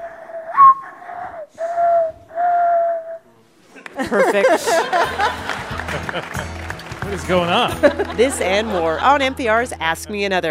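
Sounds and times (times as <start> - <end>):
person whistling a bird call imitation: 0.5 - 3.2
laughter: 3.6 - 9.7
speech: 4.0 - 10.5.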